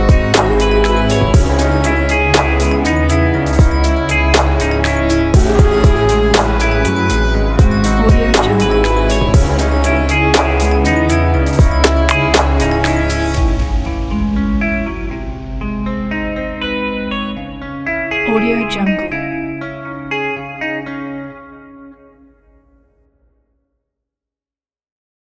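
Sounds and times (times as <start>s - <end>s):
sensual music: 0.0s - 16.8s, 18.1s - 21.4s.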